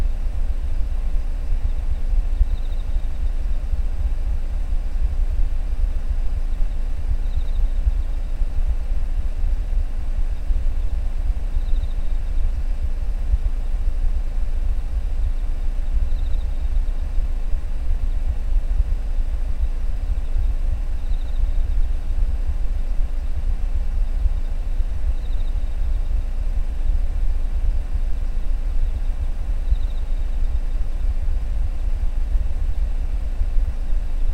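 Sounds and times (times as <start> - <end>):
insects chirping outside heard from inside a car: 0.0 - 34.3.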